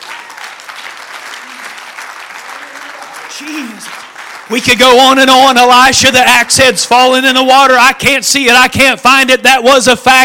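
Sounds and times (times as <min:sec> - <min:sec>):
crowd clapping: 0:00.0 - 0:06.5
speech: 0:03.4 - 0:10.2.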